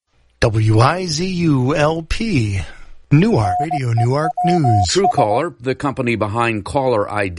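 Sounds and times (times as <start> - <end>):
speech: 0.4 - 7.3
radio time signal pips at the top of the hour: 3.3 - 5.2.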